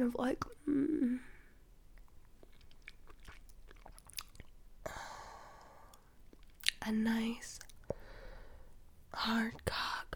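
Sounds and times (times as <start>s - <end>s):
speech: 0.0s - 0.9s, 6.9s - 7.6s, 9.2s - 10.1s
chewing and biting a popsicle: 2.0s - 4.6s.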